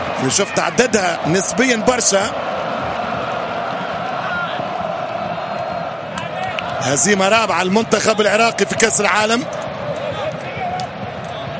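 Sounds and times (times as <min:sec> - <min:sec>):
Norwegian football fans cheering a goal at a World Cup match: 0:00.0 - 0:11.5
speech: 0:00.2 - 0:02.9, 0:06.8 - 0:09.6.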